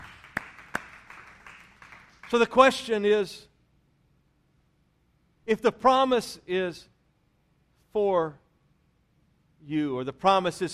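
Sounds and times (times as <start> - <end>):
audience hand clap of praise: 0.0 - 2.7
speech: 2.3 - 3.5, 5.5 - 6.9, 7.9 - 8.4, 9.6 - 10.7.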